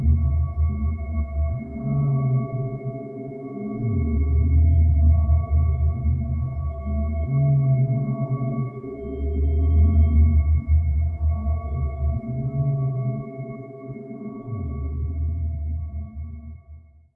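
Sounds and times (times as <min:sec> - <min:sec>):
dreamy ambient atmosphere: 0:00.0 - 0:16.8.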